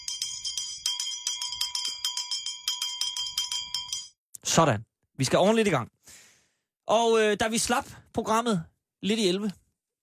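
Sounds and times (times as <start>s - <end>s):
hand bell rung to start the radio programme: 0.0s - 4.2s
speech: 4.5s - 6.0s, 6.9s - 9.6s.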